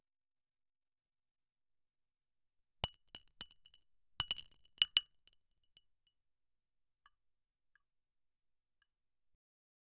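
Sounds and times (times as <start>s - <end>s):
crystals falling: 2.8s - 5.4s.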